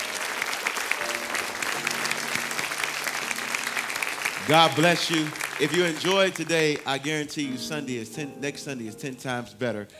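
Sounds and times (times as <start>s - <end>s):
congregation hand clap of praise: 0.0s - 7.5s
speech: 4.5s - 9.9s.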